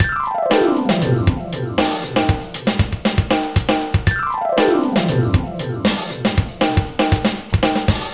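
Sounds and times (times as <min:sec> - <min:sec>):
glissando: 0:00.0 - 0:02.9, 0:04.1 - 0:07.1
lounge music: 0:00.0 - 0:08.1.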